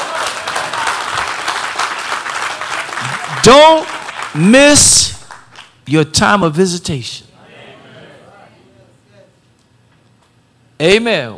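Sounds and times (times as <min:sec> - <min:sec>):
audience clapping hands: 0:00.0 - 0:05.8
speech: 0:03.4 - 0:05.2, 0:05.9 - 0:07.2, 0:10.8 - 0:11.3.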